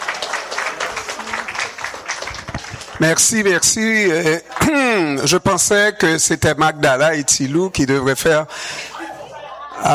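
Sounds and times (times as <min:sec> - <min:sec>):
audience applause for the radio station's CEO at a programming launch: 0:00.0 - 0:05.0
speech: 0:03.0 - 0:08.9.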